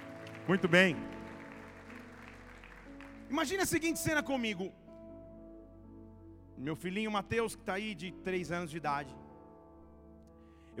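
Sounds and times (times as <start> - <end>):
audience applauding: 0.0 - 4.1
speech: 0.5 - 1.2, 3.3 - 4.8, 6.6 - 9.2.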